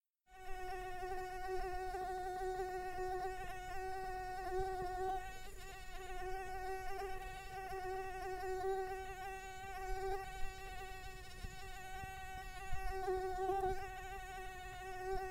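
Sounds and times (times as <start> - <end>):
insect buzzing with a steady droning hum: 0.3 - 15.3.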